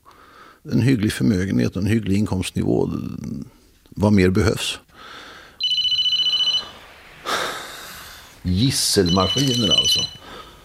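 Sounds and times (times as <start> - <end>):
speech: 0.6 - 5.2, 8.4 - 10.4
phone ringing: 5.6 - 7.0, 8.8 - 10.3.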